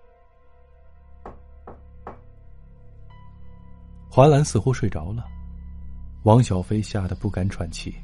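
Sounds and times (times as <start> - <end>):
knocking on a door: 1.2 - 2.3
speech: 4.2 - 5.4, 6.2 - 8.0.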